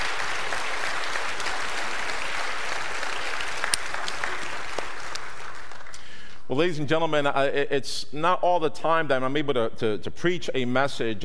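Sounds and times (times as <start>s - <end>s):
audience round of applause: 0.0s - 6.2s
speech: 6.5s - 11.2s.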